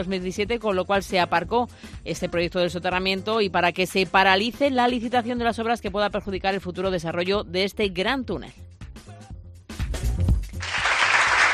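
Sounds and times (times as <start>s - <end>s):
speech: 0.0s - 8.6s
crowd applause: 10.6s - 11.5s.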